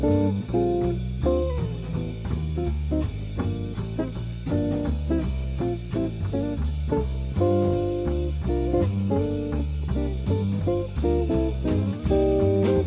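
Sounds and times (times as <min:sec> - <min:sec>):
backing music: 0:00.0 - 0:12.8.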